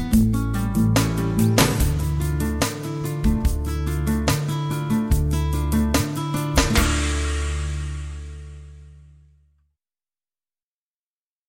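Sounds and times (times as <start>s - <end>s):
smooth melodic Latin ballad with Spanish guitars: 0.0s - 9.1s.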